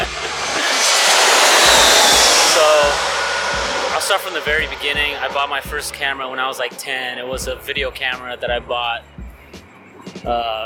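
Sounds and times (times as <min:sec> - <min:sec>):
airplane passing overhead: 0:00.0 - 0:07.4
speech: 0:04.2 - 0:09.2, 0:10.2 - 0:10.6.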